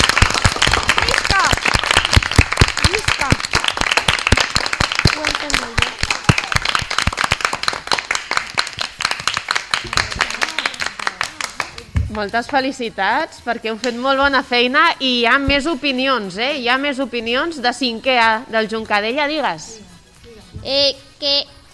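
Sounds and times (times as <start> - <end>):
class applauding: 0.0 - 11.9
speech: 12.2 - 19.7, 20.6 - 21.5.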